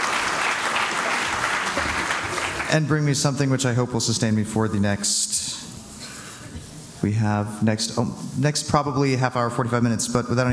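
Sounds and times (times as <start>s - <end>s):
audience applause at a live event: 0.0s - 3.0s
speech: 2.7s - 5.4s, 7.0s - 10.5s.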